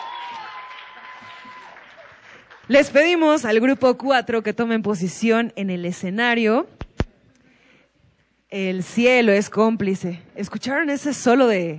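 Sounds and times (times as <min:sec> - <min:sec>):
audience applause for improvisation group: 0:00.0 - 0:02.7
speech: 0:02.7 - 0:06.8, 0:08.5 - 0:11.7.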